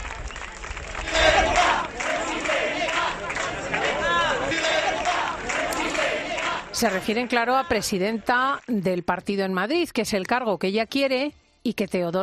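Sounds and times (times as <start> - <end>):
steady hubbub: 0.8 - 8.7
crowd chanting: 1.0 - 8.3
speech: 6.8 - 12.2.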